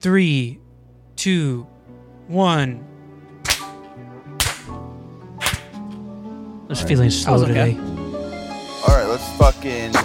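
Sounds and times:
speech: 0.0 - 0.6, 1.2 - 1.7, 2.3 - 2.9, 6.7 - 8.0, 8.8 - 10.0
synchronized hand clapping: 4.4 - 4.8.

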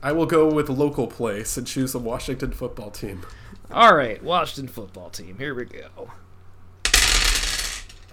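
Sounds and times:
speech: 0.0 - 6.2
six dice being rolled: 6.8 - 8.1.

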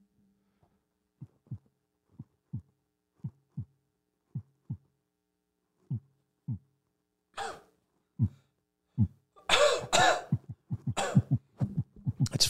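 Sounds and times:
heartbeat: 1.2 - 4.9, 5.9 - 6.7, 8.2 - 9.2, 9.8 - 12.4.

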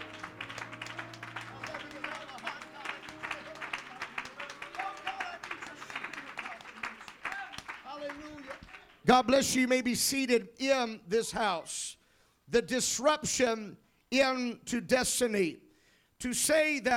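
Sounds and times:
audience clapping hands: 0.0 - 9.1
speech: 9.1 - 15.6, 16.2 - 16.9.

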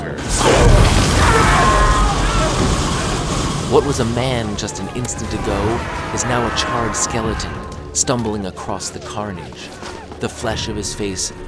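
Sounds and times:
flamethrower roaring blast: 0.0 - 7.7
speech: 3.7 - 11.4.

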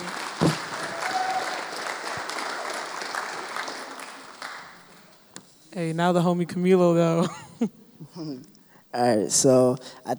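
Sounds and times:
people clapping: 0.0 - 5.5
speech: 5.8 - 10.1.

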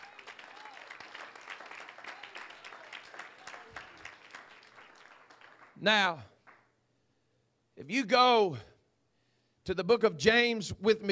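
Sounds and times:
audience clapping: 0.0 - 6.8
speech: 5.8 - 6.3, 7.8 - 8.7, 9.6 - 11.1.

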